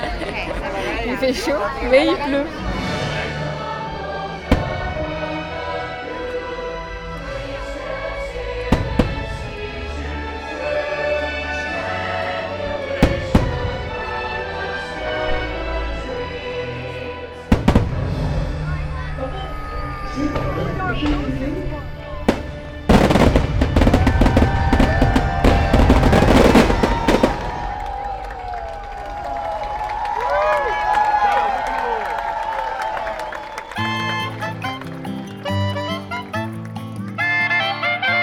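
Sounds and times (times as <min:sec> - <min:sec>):
laughter: 0:00.0 - 0:03.5
crowd murmuring and cheering: 0:00.0 - 0:38.2
speech: 0:01.2 - 0:02.7
fireworks booming and cracking: 0:04.5 - 0:05.2, 0:08.7 - 0:09.5, 0:13.0 - 0:14.1, 0:17.5 - 0:18.6, 0:22.2 - 0:28.1.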